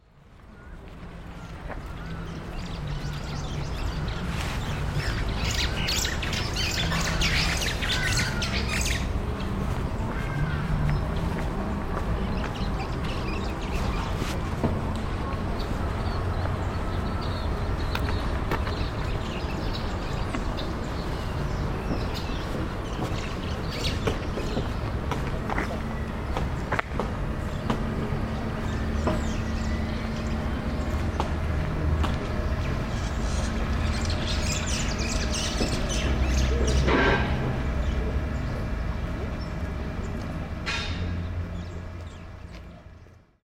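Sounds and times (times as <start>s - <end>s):
birds: 0.2s - 43.3s.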